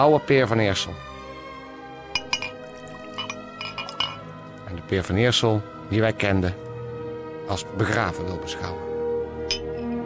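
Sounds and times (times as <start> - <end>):
speech: 0.0 - 1.1, 4.7 - 6.6, 7.5 - 8.9
soft slosh of liquid: 2.2 - 4.3
jenever glasses clinking in a toast: 2.2 - 4.5, 9.5 - 10.0.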